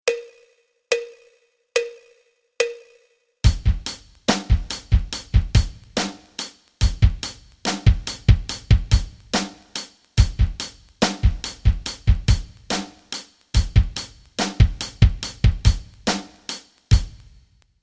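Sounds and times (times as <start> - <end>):
rock rhythms: 3.4 - 17.4.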